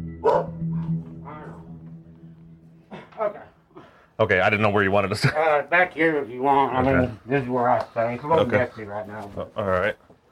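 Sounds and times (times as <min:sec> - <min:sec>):
bulldog barking: 0:00.2 - 0:00.6
speech: 0:04.2 - 0:10.1.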